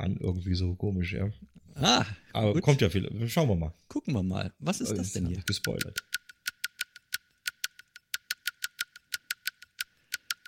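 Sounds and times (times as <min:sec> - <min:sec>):
speech: 0:00.2 - 0:06.2
castanets clicking in a lively rhythm: 0:05.5 - 0:10.4.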